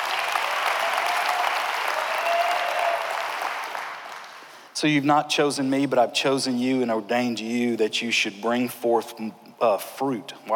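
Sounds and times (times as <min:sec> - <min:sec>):
audience applause: 0:00.0 - 0:04.6
speech: 0:04.8 - 0:10.5.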